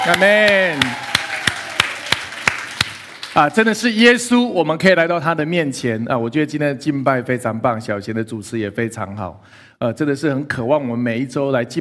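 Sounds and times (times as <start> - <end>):
speech: 0.0 - 1.1, 3.4 - 11.8
sharp claps in unison: 0.0 - 3.5.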